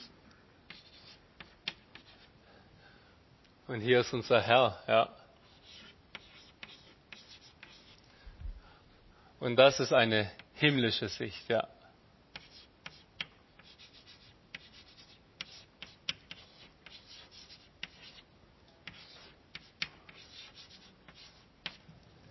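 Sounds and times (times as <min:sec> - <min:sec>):
speech: 0:03.7 - 0:05.2, 0:09.4 - 0:11.8
handwriting with a pen on paper: 0:05.5 - 0:08.0, 0:12.4 - 0:18.2, 0:18.9 - 0:21.8.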